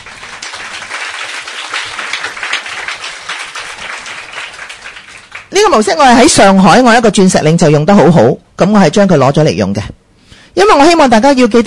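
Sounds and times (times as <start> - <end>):
audience applause: 0.0 - 5.6
speech: 5.6 - 10.0, 10.6 - 11.6.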